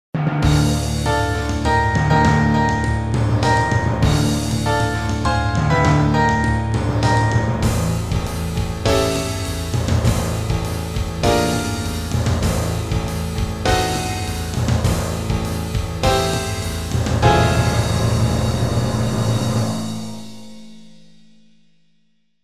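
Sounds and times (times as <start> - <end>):
overture: 0.4 - 20.7.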